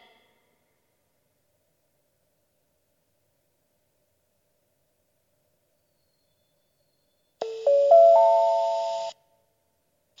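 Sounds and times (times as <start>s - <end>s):
Iiyama pass train station: 7.5s - 9.1s.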